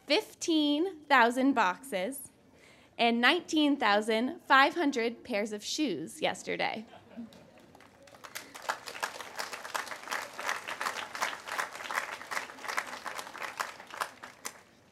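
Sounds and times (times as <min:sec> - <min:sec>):
speech: 0:00.1 - 0:02.3, 0:03.0 - 0:07.4
audience applause: 0:07.5 - 0:14.7.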